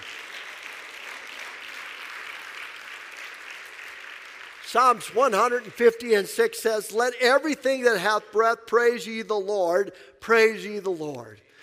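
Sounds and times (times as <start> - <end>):
audience clapping: 0.0 - 7.2
speech: 4.7 - 11.4.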